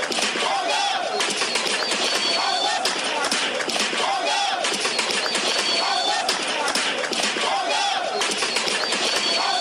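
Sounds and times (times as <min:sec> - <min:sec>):
crowd of protesters in Khartoum, Sudan singing a revolutionary song: 0:00.0 - 0:09.5.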